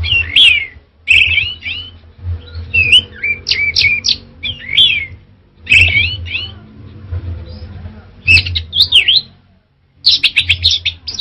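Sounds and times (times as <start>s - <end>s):
Orange-headed thrush singing: 0.0s - 11.1s.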